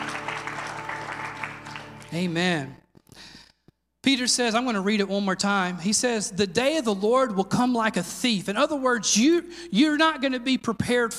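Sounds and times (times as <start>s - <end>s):
crowd applause: 0.0s - 2.3s
speech: 2.1s - 2.8s, 4.1s - 11.1s.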